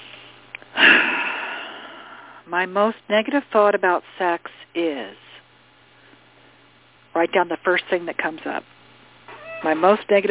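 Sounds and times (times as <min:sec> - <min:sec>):
person taking a deep breath: 0:00.8 - 0:02.4
speech: 0:02.5 - 0:05.2, 0:07.2 - 0:08.7, 0:09.6 - 0:10.2.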